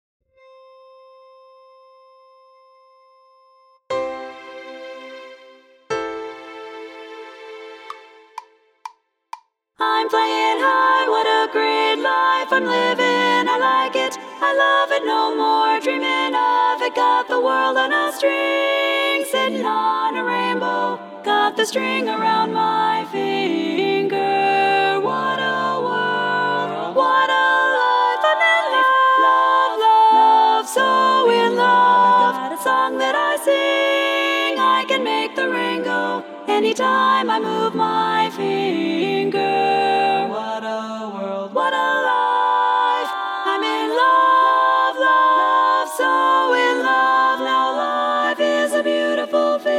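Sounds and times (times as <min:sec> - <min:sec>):
chorus singing: 0:09.8 - 0:49.7.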